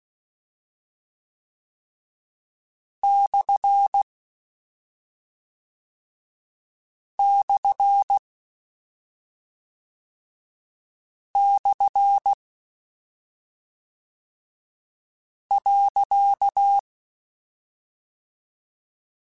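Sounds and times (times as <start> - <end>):
Morse code CW code groups: 3.1 - 4.1, 7.2 - 8.2, 11.4 - 12.4, 15.5 - 16.8.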